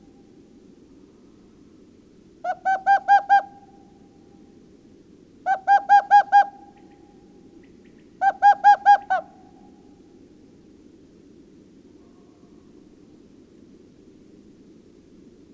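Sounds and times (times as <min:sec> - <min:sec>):
owl hooting: 0:02.4 - 0:04.1, 0:05.4 - 0:09.9.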